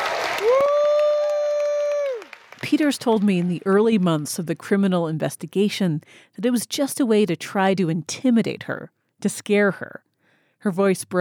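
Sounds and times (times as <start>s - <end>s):
long held cry: 0.0s - 2.4s
crowd cheering and applauding Tina Peters at a church in Mesa County: 0.0s - 3.8s
speech: 2.6s - 11.2s.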